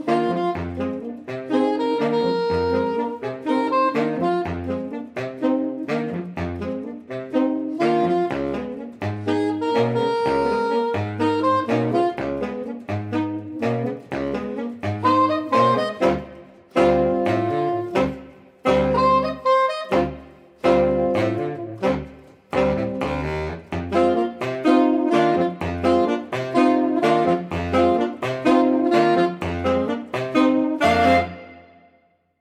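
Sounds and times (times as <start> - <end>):
saxophone quartet playing in London: 0.0 - 32.0.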